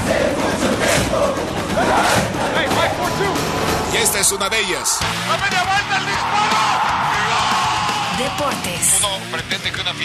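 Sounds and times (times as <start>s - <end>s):
people shouting: 0.0s - 9.0s
large stadium crowd roaring and cheering: 0.0s - 9.2s
speech: 4.3s - 7.4s, 8.2s - 10.0s.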